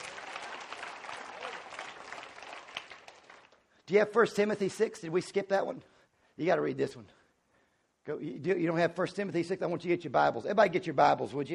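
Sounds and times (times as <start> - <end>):
audience clapping: 0.0 - 3.7
speech: 3.9 - 7.2, 8.0 - 11.5.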